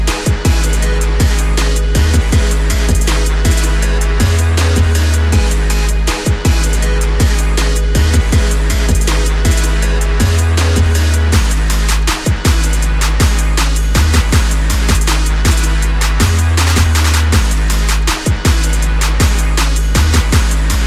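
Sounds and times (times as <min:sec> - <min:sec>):
hip hop instrumental: 0:00.0 - 0:20.8.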